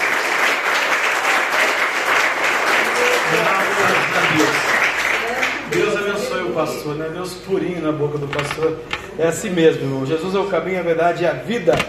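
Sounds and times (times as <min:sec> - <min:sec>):
audience clapping loudly: 0:00.0 - 0:06.2
speech: 0:06.6 - 0:11.8.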